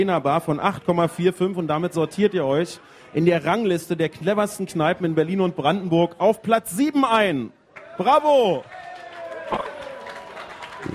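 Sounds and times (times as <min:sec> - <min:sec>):
speech: 0:00.0 - 0:08.8
subdued applause from bar audience: 0:07.8 - 0:10.9.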